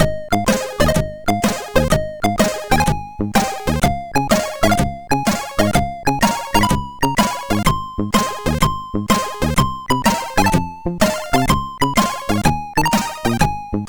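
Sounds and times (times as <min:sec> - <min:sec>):
MOS6581R4 tune: 0:00.0 - 0:13.8.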